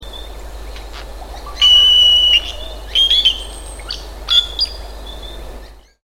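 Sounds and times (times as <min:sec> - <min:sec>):
giant cowbird whistling call: 0:01.6 - 0:04.7.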